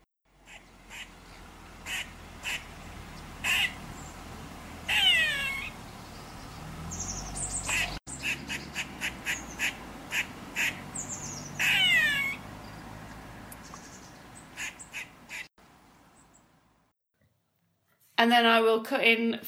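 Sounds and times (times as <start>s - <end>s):
cross or frightened squirrel calls: 0.4s - 15.5s
speech: 18.2s - 19.4s.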